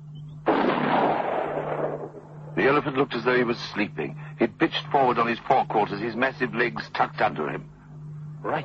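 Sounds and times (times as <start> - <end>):
gunshot: 0.5 - 2.1
speech: 2.6 - 7.7, 8.4 - 8.6.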